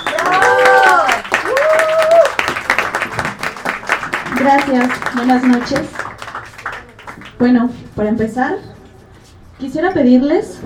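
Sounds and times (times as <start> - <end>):
audience applause: 0.0 - 7.4
speech: 4.4 - 6.0, 7.4 - 8.7, 9.6 - 10.6.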